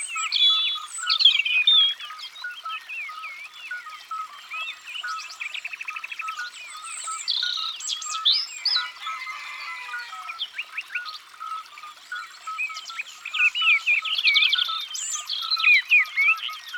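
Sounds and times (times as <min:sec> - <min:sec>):
European robin singing: 0:00.0 - 0:16.7.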